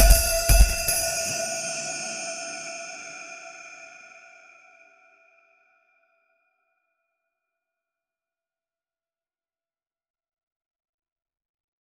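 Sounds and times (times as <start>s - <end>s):
Indian horror percussion: 0.0s - 4.2s.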